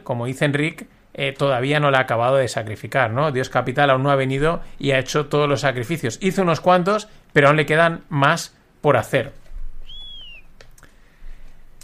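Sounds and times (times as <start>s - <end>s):
speech: 0.0s - 9.4s
short high-pitched whistle: 9.8s - 10.5s.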